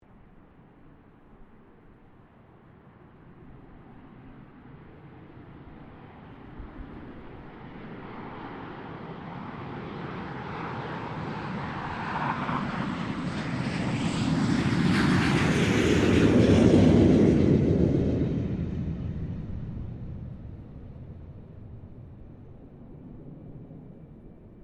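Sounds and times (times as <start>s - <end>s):
CA-27 Sabre aircraft passing: 4.7s - 24.6s.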